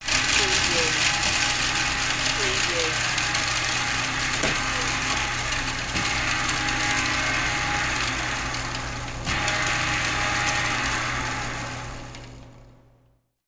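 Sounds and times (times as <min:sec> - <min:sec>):
food processor running: 0:00.0 - 0:12.6.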